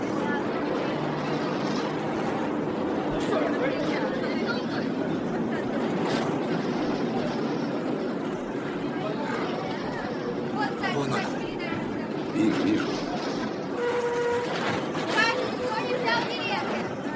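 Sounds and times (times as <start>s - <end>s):
crowded tram rumbling and rattling: 0.0s - 17.1s
tram passengers chattering: 0.0s - 17.1s.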